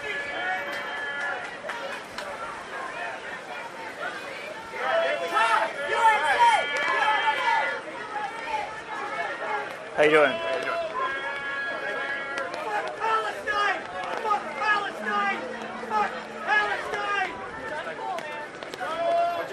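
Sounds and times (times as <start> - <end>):
crowd yelling: 0.0 - 19.5
speech: 10.0 - 10.5.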